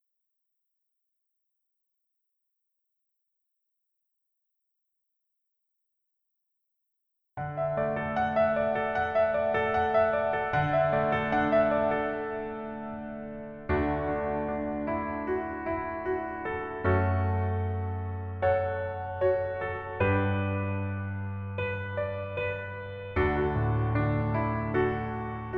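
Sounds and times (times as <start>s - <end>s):
piano melody instrumental: 7.4s - 25.5s.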